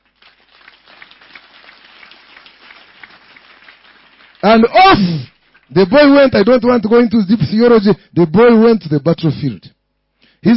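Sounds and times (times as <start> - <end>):
audience clapping: 0.0 - 5.9
speech: 4.5 - 9.7.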